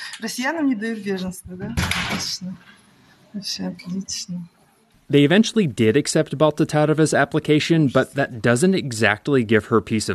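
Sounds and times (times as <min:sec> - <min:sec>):
speech: 0:00.2 - 0:10.1
door slamming: 0:01.7 - 0:02.4.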